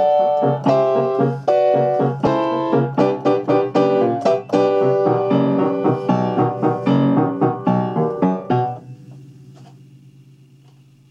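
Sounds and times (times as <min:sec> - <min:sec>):
Spanish waltz music: 0:00.0 - 0:08.8.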